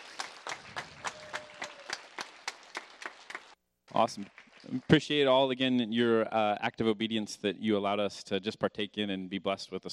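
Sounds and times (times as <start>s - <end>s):
audience applause: 0.0s - 5.2s
speech: 4.0s - 9.9s.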